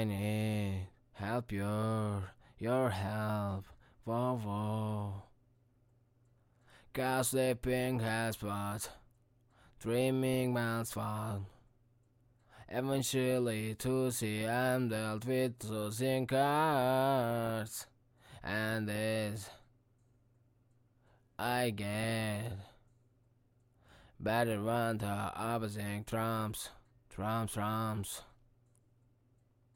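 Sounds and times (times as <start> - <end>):
hip hop a cappella vocal in A minor at 82 BPM: 0.0 - 5.4, 6.7 - 9.1, 9.7 - 11.7, 12.6 - 19.7, 21.4 - 22.9, 24.2 - 28.4.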